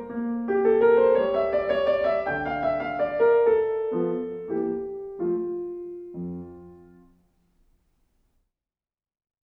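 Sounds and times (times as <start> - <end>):
piano waltz: 0.0 - 7.2.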